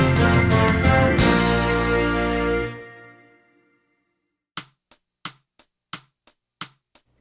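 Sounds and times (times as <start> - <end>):
brass and woodwinds playing variations: 0.0 - 3.4.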